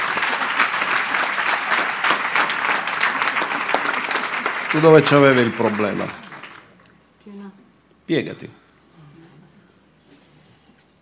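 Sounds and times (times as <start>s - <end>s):
audience applause: 0.0s - 6.9s
speech: 4.7s - 6.2s, 7.5s - 8.6s.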